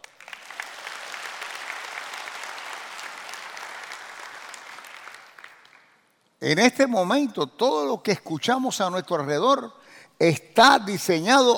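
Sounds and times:
audience applause: 0.0 - 6.0
speech: 6.4 - 11.5.

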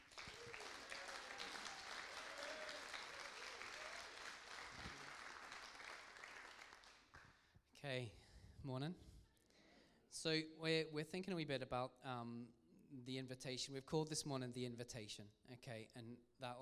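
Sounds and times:
crowd applause: 0.0 - 7.2
speech: 7.8 - 9.1, 10.2 - 16.6.

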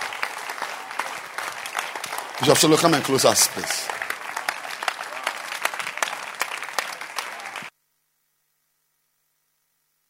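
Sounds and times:
audience applause: 0.0 - 7.7
speech: 2.4 - 4.0.

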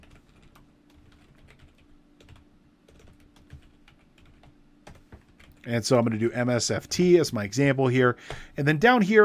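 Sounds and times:
faint keystrokes on a computer keyboard typing into a spreadsheet: 0.0 - 5.7
low steady hum: 0.0 - 9.2
speech: 5.7 - 9.2.

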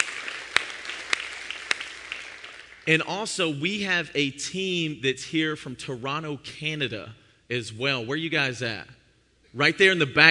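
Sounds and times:
church congregation applauding during a morning service: 0.0 - 3.5
speech: 2.9 - 10.2.

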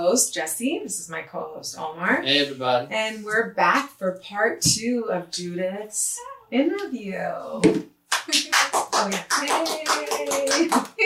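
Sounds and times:
speech: 0.1 - 11.0
sharp hand clapping: 8.1 - 11.0.

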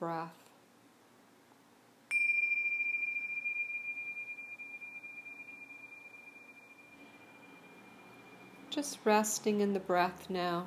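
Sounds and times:
speech: 0.0 - 0.4, 8.7 - 10.6
meditation bell ringing: 2.1 - 8.7.

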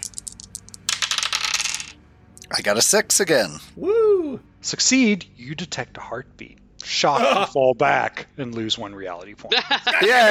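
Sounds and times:
dice being rolled: 0.0 - 2.0
speech: 2.5 - 10.2
laughter: 9.5 - 10.2.

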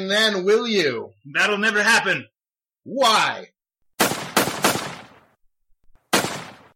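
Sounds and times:
speech: 0.0 - 3.6
gunshots: 4.0 - 5.4, 6.1 - 6.7.

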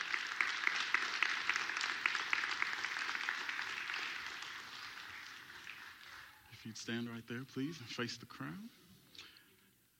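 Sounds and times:
audience applauding: 0.0 - 6.6
speech: 6.6 - 8.8.

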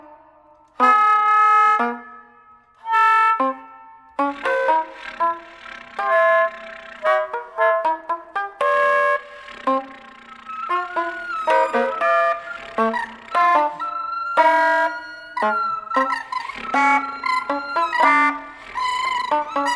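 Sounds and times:
solo saxophone using extended techniques: 0.8 - 19.7.

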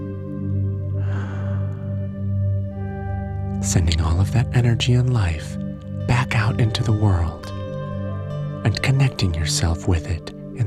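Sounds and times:
sustained musical drone: 0.0 - 10.6
slow breath out during guided breathing: 0.9 - 2.3
speech: 3.6 - 5.6, 6.4 - 7.6, 8.8 - 10.6.

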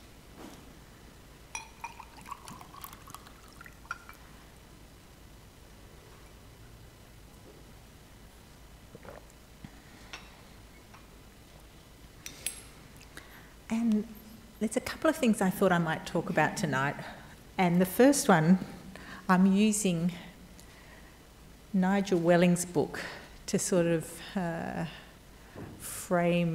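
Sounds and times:
faint clinks: 1.5 - 2.3
water pouring: 1.6 - 4.2
speech: 13.8 - 18.7, 19.3 - 20.3, 21.7 - 25.0, 25.6 - 26.5.

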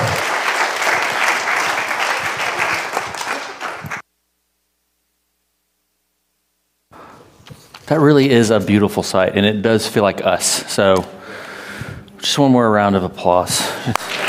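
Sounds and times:
audience applause: 0.0 - 4.0, 13.9 - 14.2
speech: 7.9 - 11.4, 12.2 - 14.2.

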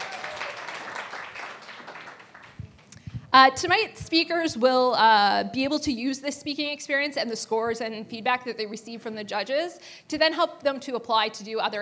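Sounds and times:
audience round of applause: 0.0 - 2.9
speech: 3.3 - 11.8.

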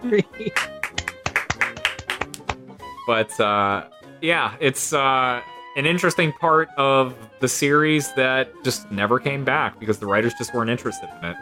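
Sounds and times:
speech: 0.0 - 0.6, 3.1 - 11.3
hand clapping: 0.5 - 2.6.

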